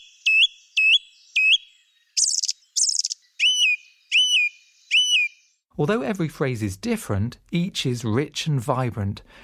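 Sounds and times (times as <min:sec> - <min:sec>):
song thrush singing: 0:00.0 - 0:05.6
speech: 0:05.8 - 0:09.4.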